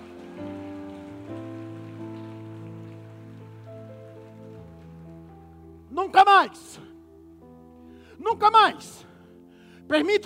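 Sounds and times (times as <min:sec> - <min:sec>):
audience applauding: 0:00.0 - 0:05.9
speech: 0:06.1 - 0:06.9, 0:08.3 - 0:09.1, 0:09.9 - 0:10.2.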